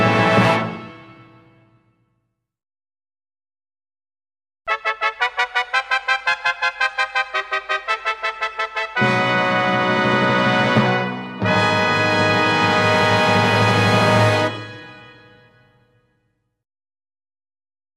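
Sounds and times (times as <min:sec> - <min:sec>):
festive fanfare for the start of a celebration: 0:00.0 - 0:01.3, 0:04.7 - 0:15.3.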